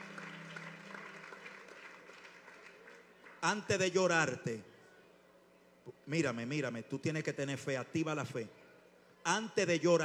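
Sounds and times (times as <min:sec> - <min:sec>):
audience applauding: 0:00.0 - 0:03.6
speech: 0:03.4 - 0:04.7, 0:05.8 - 0:08.6, 0:09.2 - 0:10.0.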